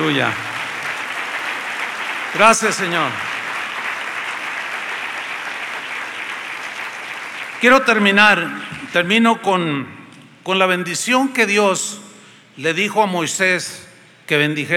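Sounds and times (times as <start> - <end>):
speech: 0.0 - 0.5, 2.3 - 3.3, 7.6 - 12.0, 12.6 - 14.7
audience applause: 0.0 - 9.0.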